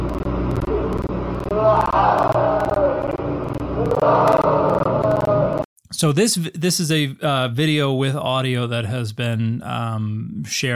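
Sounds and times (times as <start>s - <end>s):
steady rumbling roar: 0.6s - 5.6s
recorded screams coming from the ground: 1.4s - 5.6s
speech: 6.0s - 10.7s.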